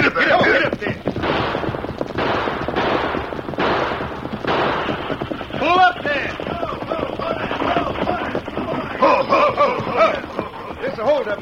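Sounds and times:
laughter: 0.0s - 0.8s, 5.6s - 11.4s
gunfire during a stagecoach hold-up: 1.0s - 8.5s
impact: 1.1s - 5.8s.

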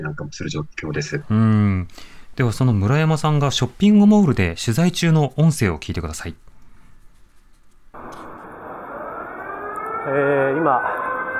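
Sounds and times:
speech: 0.0s - 6.5s, 10.0s - 11.0s
air raid siren wailing: 8.0s - 11.3s.

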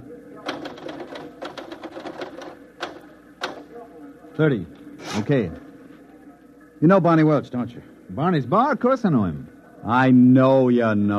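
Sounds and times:
typing on a typewriter: 0.4s - 3.7s
speech: 4.4s - 5.7s, 6.8s - 11.1s.

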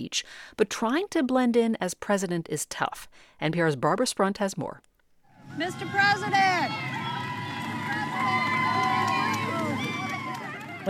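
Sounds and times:
speech: 0.0s - 4.9s, 5.5s - 6.9s
crowd of passersby cheering and calling out: 5.4s - 10.8s.

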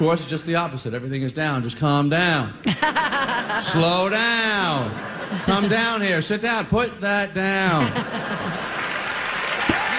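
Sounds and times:
speech: 0.0s - 8.5s
laughter: 2.6s - 6.3s, 7.5s - 9.9s
applause: 8.5s - 9.9s.

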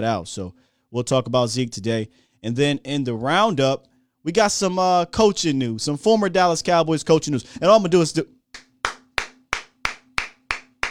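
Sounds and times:
speech: 0.0s - 8.4s
person clapping hands: 8.6s - 10.8s.

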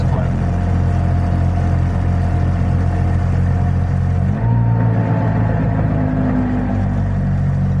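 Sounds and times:
Trabant two-stroke car engine running with the choke eased out: 0.0s - 7.7s.

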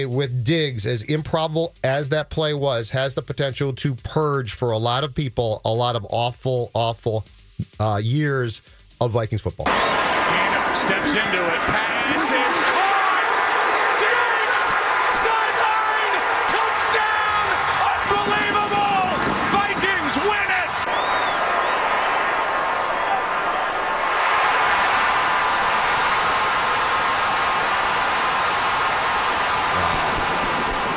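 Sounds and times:
speech: 0.0s - 10.1s, 10.8s - 12.8s
stadium crowd roaring: 9.6s - 30.9s.

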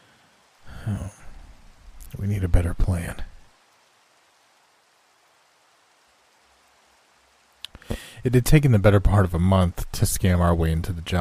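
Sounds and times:
steady soft rain: 0.0s - 11.1s
person groaning: 0.6s - 1.3s
speech: 0.9s - 1.2s, 2.2s - 3.3s, 7.9s - 11.1s.

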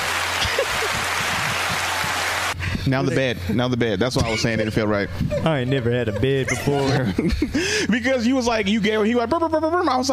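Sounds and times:
applause: 0.0s - 2.6s
laughter: 0.3s - 2.2s, 4.2s - 8.3s
speech: 2.9s - 10.1s.

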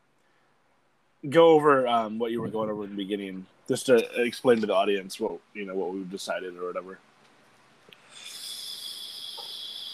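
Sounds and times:
speech: 1.2s - 7.1s
faint clicks: 7.2s - 9.9s
person taking a long steady inhale: 8.0s - 9.9s.

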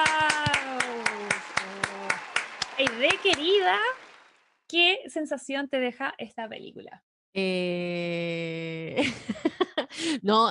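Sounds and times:
person cheering: 0.0s - 3.9s
hands clapping: 0.0s - 4.4s
speech: 2.9s - 4.0s, 4.7s - 10.4s
laughter: 9.0s - 10.0s.

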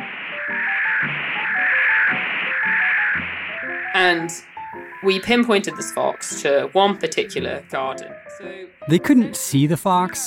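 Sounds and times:
harsh radio receiver static swelling to a roar: 0.0s - 8.3s
faint tonal warbles: 0.0s - 8.9s
speech: 4.0s - 10.2s.

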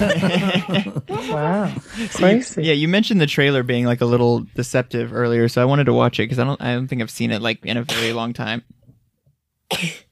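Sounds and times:
laughter: 0.0s - 2.4s
speech: 0.0s - 8.8s, 9.7s - 10.1s
sneeze: 7.9s - 8.2s.

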